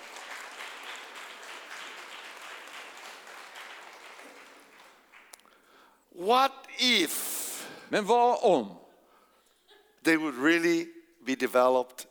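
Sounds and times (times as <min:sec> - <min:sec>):
audience applause: 0:00.0 - 0:05.4
speech: 0:06.2 - 0:07.3, 0:07.9 - 0:08.8, 0:10.0 - 0:12.1.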